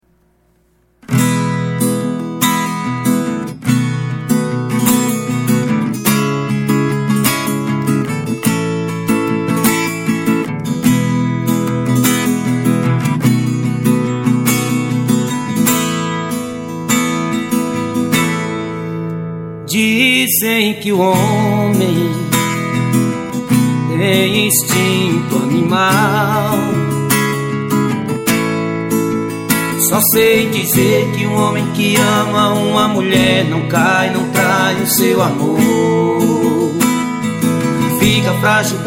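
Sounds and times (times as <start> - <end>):
live acoustic music: 1.0 - 38.8.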